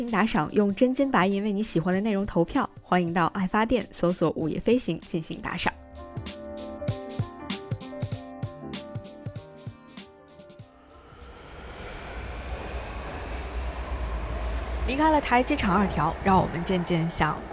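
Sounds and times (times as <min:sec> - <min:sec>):
speech: 0:00.0 - 0:06.4, 0:15.0 - 0:17.5
subway train clacking: 0:10.9 - 0:17.5.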